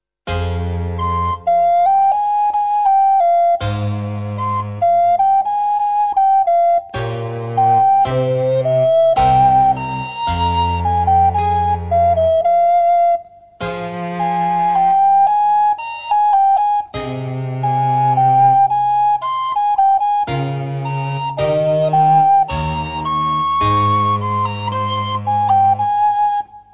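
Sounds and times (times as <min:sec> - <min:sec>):
sonata in F minor: 0:00.3 - 0:26.7.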